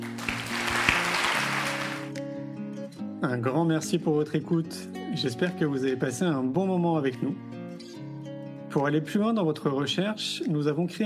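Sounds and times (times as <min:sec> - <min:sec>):
audience applause: 0:00.0 - 0:02.2
speech: 0:03.2 - 0:07.6, 0:08.7 - 0:11.0.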